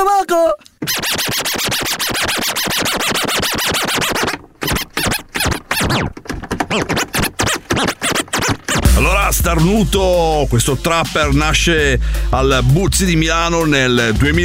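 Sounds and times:
record scratching: 0.8 - 10.2
beat: 7.8 - 14.4
speech: 9.5 - 14.4.

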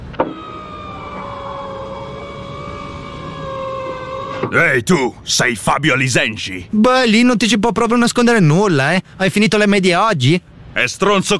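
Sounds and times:
car pulling up alongside: 0.0 - 4.8
speech: 4.4 - 11.3.

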